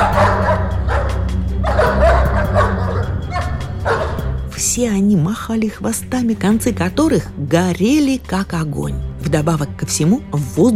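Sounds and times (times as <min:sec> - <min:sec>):
pack of large dogs barking: 0:00.0 - 0:04.5
speech: 0:04.8 - 0:10.7.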